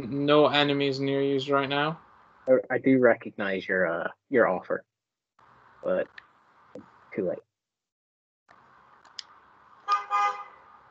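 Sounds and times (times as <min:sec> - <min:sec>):
speech: 0:00.0 - 0:04.9, 0:05.8 - 0:06.2, 0:06.8 - 0:07.5
car horn honking: 0:09.9 - 0:10.6.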